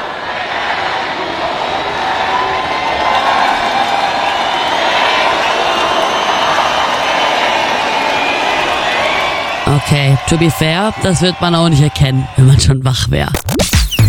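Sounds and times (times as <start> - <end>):
15,000 ravers singing a birthday song: 0.0 - 9.6
speech: 9.8 - 13.5.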